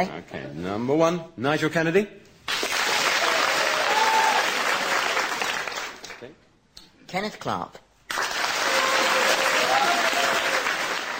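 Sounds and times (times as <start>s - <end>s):
speech: 0.0s - 2.2s, 7.1s - 7.8s
audience applause: 2.5s - 6.2s, 8.1s - 11.1s.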